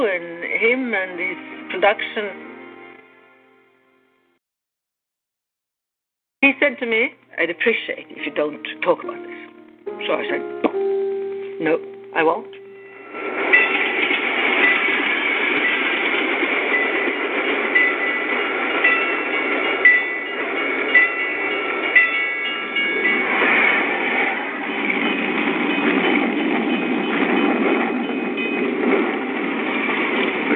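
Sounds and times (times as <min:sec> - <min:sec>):
speech: 0:00.1 - 0:02.5, 0:06.4 - 0:11.0, 0:11.6 - 0:12.6
train cars rolling through countryside, rumbling and rattling: 0:13.0 - 0:30.5.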